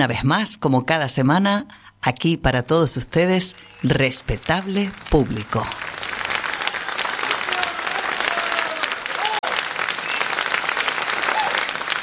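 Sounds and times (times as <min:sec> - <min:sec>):
speech: 0:00.0 - 0:06.0
audience applause: 0:03.7 - 0:12.0.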